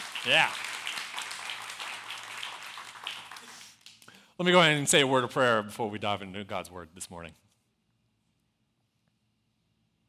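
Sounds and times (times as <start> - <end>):
audience applause: 0.0 - 4.0
speech: 0.2 - 0.7, 4.4 - 7.4.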